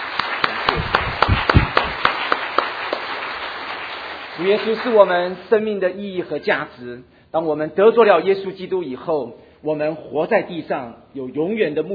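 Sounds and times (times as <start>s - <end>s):
church congregation clapping in praise: 0.0s - 5.6s
speech: 4.4s - 11.9s.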